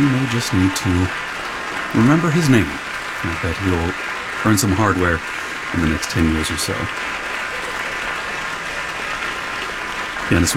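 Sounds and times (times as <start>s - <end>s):
speech: 0.0s - 7.2s, 10.3s - 10.5s
audience applause for a young pianist at Kulas Hall: 0.0s - 10.5s
laughter: 0.0s - 10.5s.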